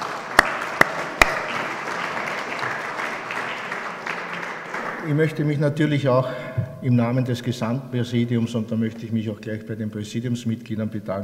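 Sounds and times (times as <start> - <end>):
sharp loud claps: 0.0 - 5.1
applause: 0.0 - 5.4
speech: 5.0 - 11.2.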